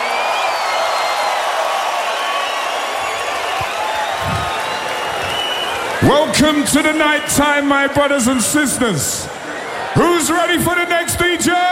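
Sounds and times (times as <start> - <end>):
scattered whoops and claps: 0.0 - 6.0
festival crowd at Tomorrowland cheering for a DJ: 0.0 - 11.7
speech: 6.4 - 9.4, 10.0 - 11.7.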